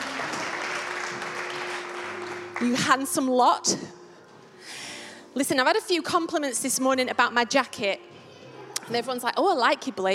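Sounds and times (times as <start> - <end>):
crowd applause: 0.0 - 3.0
faint sustained hum: 0.2 - 3.0
speech: 2.6 - 4.0, 5.4 - 8.2, 8.9 - 10.1.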